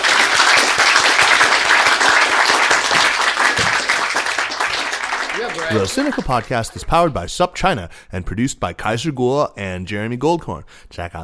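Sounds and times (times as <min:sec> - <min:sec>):
crowd applause: 0:00.0 - 0:07.1
speech: 0:05.6 - 0:11.2.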